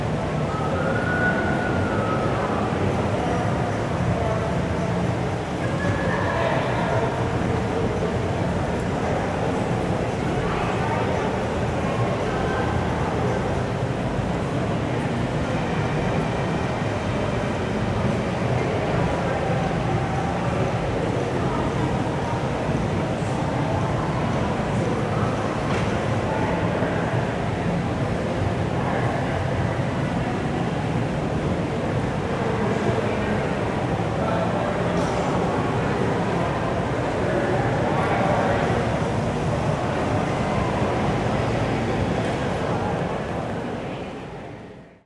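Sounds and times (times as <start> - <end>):
mall crowd walla: 0.0 - 45.0.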